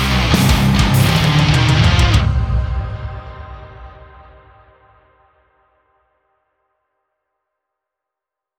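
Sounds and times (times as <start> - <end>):
high gain guitar cabinet: 0.0 - 3.7.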